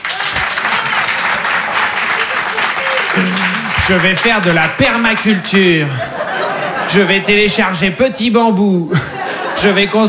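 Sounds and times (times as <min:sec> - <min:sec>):
audience clapping: 0:00.0 - 0:07.4
laughter: 0:00.0 - 0:10.0
speech: 0:03.2 - 0:10.0.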